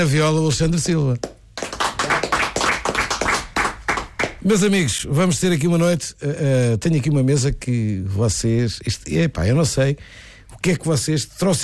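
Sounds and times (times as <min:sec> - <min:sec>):
speech: 0:00.0 - 0:01.4, 0:04.4 - 0:11.6
audience applause at a fado night for a Portuguese guitar player: 0:01.6 - 0:04.4.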